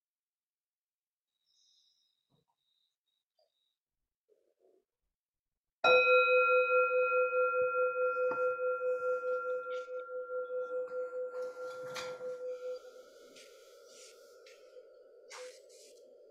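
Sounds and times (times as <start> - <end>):
meditation bell ringing: 5.9 - 15.5.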